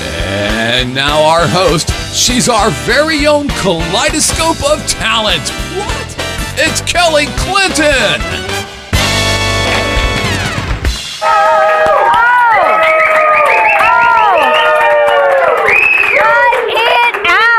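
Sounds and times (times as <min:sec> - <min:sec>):
short burst of music: 0:00.0 - 0:11.2
speech: 0:00.8 - 0:08.6
studio audience clapping: 0:09.6 - 0:17.5
Las Vegas talk show studio audience whoops and shouts: 0:11.2 - 0:17.2.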